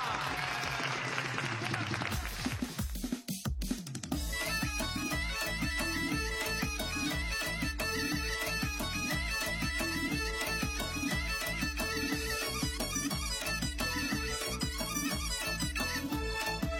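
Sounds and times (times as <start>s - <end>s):
audience applause at a cheerful stage show: 0.0s - 2.9s
rhythmic beat-driven music: 2.1s - 16.7s.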